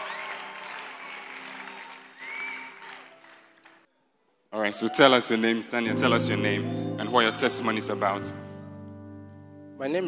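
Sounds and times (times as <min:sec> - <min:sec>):
church congregation applauding: 0:00.0 - 0:03.9, 0:04.7 - 0:08.2
speech: 0:04.6 - 0:08.4, 0:09.8 - 0:10.0.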